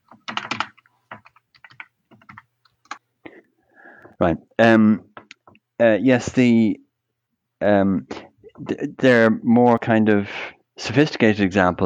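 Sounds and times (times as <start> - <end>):
password typed on a computer keyboard: 0.0 - 3.0
speech: 4.2 - 5.1, 5.8 - 6.8, 7.6 - 11.8.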